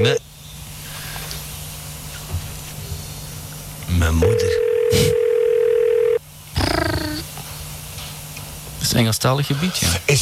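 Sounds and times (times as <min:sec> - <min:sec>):
speech: 0:00.0 - 0:00.3, 0:04.0 - 0:05.2, 0:08.9 - 0:10.1
telephone ringing: 0:04.2 - 0:06.2.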